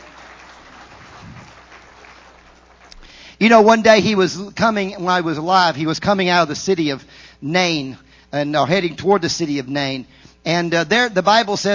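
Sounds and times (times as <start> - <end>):
audience applause: 0.0 - 3.2
speech: 3.4 - 11.7.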